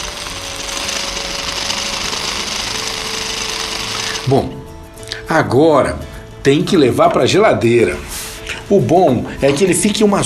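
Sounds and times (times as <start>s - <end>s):
food processor blending thick paste: 0.0s - 4.5s
speech: 4.3s - 4.6s, 5.3s - 8.1s, 8.7s - 10.2s.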